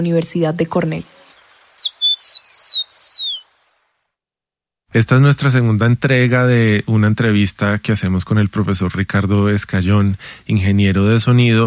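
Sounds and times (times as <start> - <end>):
speech: 0.0 - 1.2, 4.9 - 11.6
rufous-collared sparrow singing: 0.7 - 3.6.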